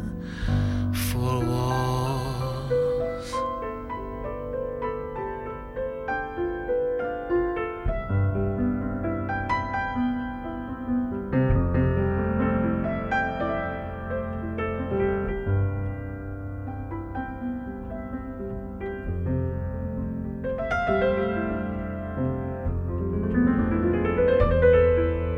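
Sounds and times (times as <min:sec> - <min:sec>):
pianist playing jazz: 0:00.0 - 0:25.3.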